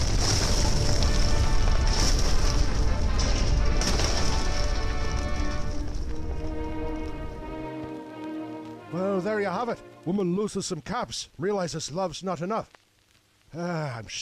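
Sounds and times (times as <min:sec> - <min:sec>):
garage exploding: 0:00.0 - 0:06.0
house collapsing: 0:00.0 - 0:07.5
speech: 0:09.2 - 0:12.8, 0:13.5 - 0:14.2.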